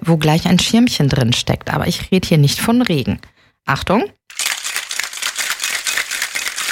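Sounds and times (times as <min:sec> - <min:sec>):
speech: 0:00.0 - 0:04.2
cocktail shaker shaken with ice rattling: 0:04.3 - 0:06.6.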